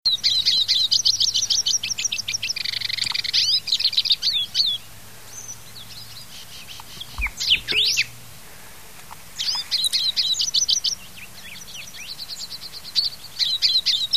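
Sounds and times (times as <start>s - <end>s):
hooded siskin song in South America: 0.1s - 8.2s, 8.9s - 14.1s.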